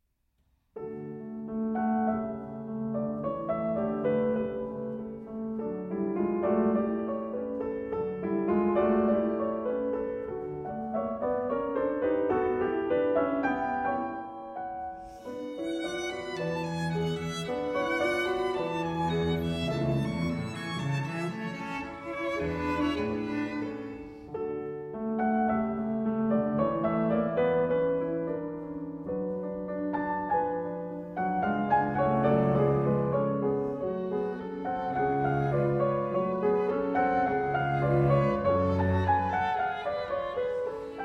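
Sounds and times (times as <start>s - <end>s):
chamber trio music: 0.8s - 41.0s.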